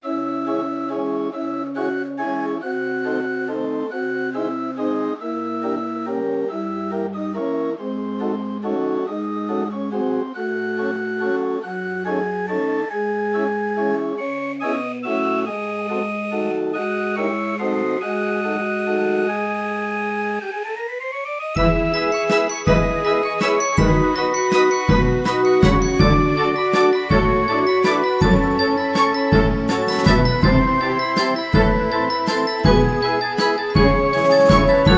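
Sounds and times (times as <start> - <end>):
title theme music: 0.0 - 34.9.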